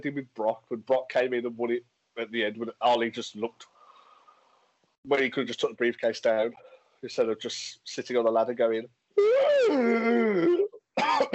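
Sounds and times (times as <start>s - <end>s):
speech: 0.0s - 3.7s, 5.0s - 11.3s
person clearing throat: 9.6s - 11.3s.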